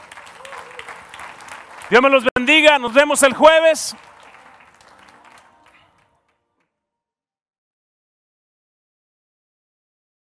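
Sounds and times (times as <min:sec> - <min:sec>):
audience applause: 0:00.0 - 0:06.3
speech: 0:01.9 - 0:04.1.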